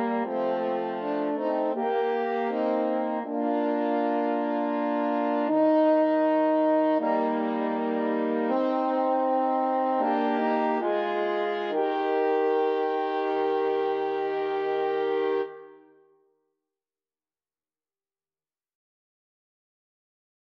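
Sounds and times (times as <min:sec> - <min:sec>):
horn trio playing a hymn: 0:00.0 - 0:15.9.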